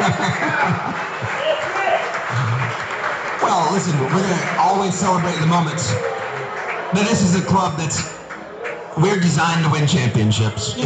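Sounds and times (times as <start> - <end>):
scattered laughter: 0.0 - 1.4
audience clapping: 0.0 - 10.8
speech: 3.7 - 6.2, 6.9 - 8.1, 9.0 - 10.8.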